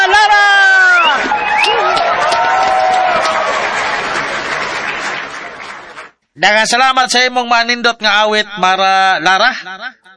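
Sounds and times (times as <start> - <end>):
crowd clapping for a singer at a village singing contest in Barangay Batuon: 1.0 - 6.2
speech: 6.4 - 10.1.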